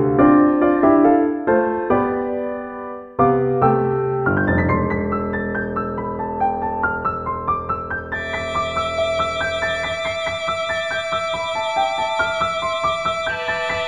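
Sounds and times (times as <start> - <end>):
piano trio playing: 0.0 - 13.8.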